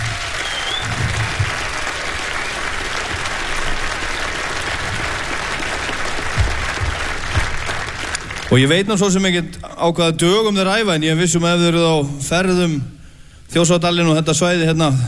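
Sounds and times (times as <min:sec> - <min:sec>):
louder claps or thumps: 0:00.0 - 0:04.0, 0:04.7 - 0:08.4
audience applause for a band: 0:00.0 - 0:09.1
speech: 0:08.5 - 0:15.0.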